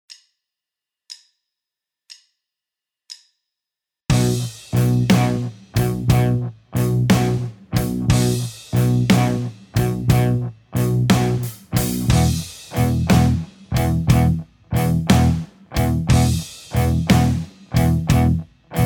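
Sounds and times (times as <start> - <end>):
rock backing track: 4.1 - 18.8.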